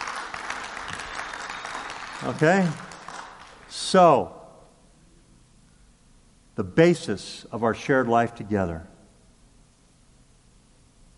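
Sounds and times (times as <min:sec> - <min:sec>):
audience clapping: 0:00.0 - 0:04.0
speech: 0:02.2 - 0:02.8, 0:03.7 - 0:04.4, 0:06.6 - 0:08.9.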